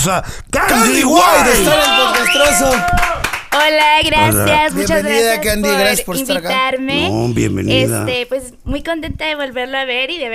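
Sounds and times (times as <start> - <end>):
speech: 0.0 - 10.3
audience applause: 1.6 - 3.6.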